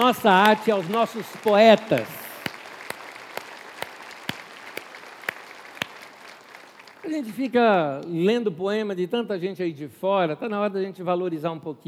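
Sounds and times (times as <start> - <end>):
speech: 0.0 - 2.2, 7.2 - 11.8
audience applause: 0.0 - 7.1.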